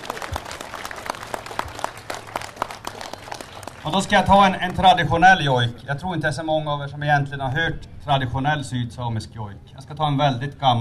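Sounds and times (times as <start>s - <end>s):
audience applause: 0.0s - 4.9s
speech: 3.8s - 10.7s.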